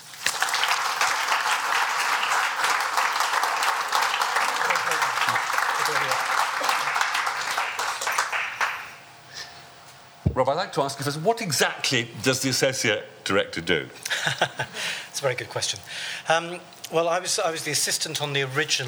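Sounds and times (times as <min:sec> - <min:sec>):
audience applause welcoming a speaker at an opera talk: 0:00.0 - 0:09.0
laughter: 0:04.2 - 0:07.5, 0:14.0 - 0:15.1
speech: 0:10.4 - 0:18.8.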